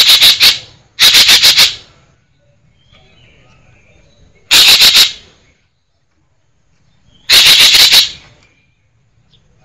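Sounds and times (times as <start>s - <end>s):
green magpie harsh chattering: 0.0s - 1.9s, 4.5s - 5.2s, 7.3s - 8.2s.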